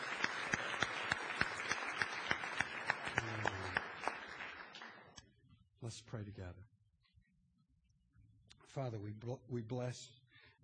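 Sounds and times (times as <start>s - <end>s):
audience applause: 0.0s - 5.2s
speech: 5.8s - 6.8s, 8.7s - 10.2s.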